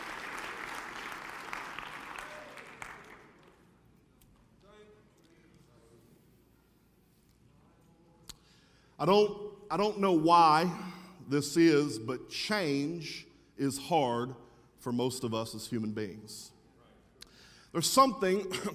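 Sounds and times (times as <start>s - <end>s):
audience clapping hands: 0.0s - 3.9s
speech: 9.0s - 16.6s, 17.7s - 18.7s.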